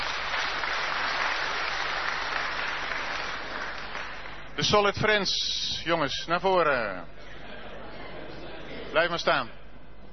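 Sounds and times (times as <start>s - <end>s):
audience applause: 0.0s - 4.4s
speech: 4.6s - 7.2s, 8.9s - 9.6s.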